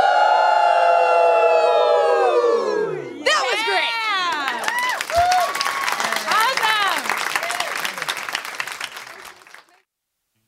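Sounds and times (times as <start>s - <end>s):
audience howling like wolves: 0.0s - 6.1s
cheering and clapping: 0.0s - 9.9s.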